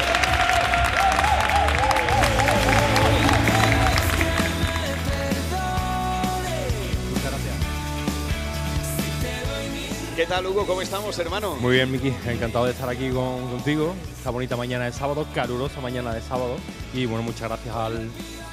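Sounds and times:
audience clapping: 0.0 - 5.5
tuneful music: 0.0 - 18.5
speech: 10.3 - 18.4.

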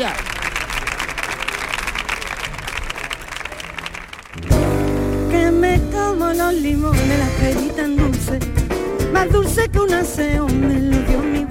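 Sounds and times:
audience applause: 0.0 - 5.5
strong low-pitched music: 4.4 - 11.4
speech: 6.1 - 8.6, 9.2 - 11.3.

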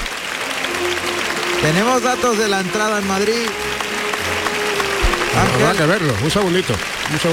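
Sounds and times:
bullring crowd ovation: 0.0 - 7.3
speech: 1.6 - 3.8, 5.3 - 7.3.

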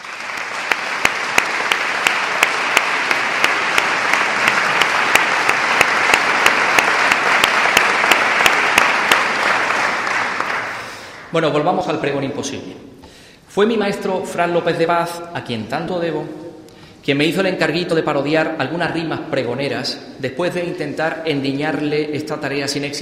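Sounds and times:
audience applause: 0.0 - 11.3
speech: 11.3 - 12.9, 13.6 - 16.4, 17.0 - 22.9.

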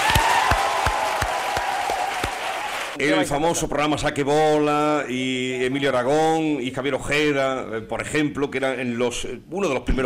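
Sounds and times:
audience applause: 0.0 - 3.0
speech: 3.0 - 10.0.

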